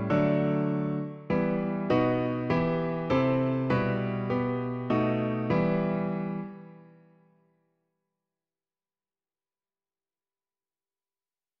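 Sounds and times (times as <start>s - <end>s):
piano version of a song: 0.0s - 7.3s.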